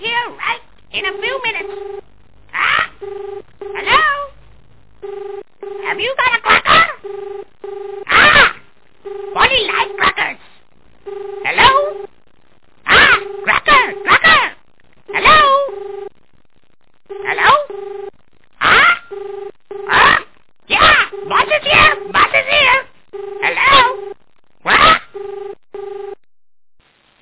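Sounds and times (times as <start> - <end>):
Polly voice: 0.0 - 1.8, 2.5 - 2.9, 3.8 - 4.4, 5.8 - 7.0, 8.1 - 8.6, 9.4 - 10.6, 11.4 - 12.1, 12.9 - 15.8, 17.2 - 17.7, 18.6 - 19.1, 19.9 - 24.0, 24.6 - 25.1.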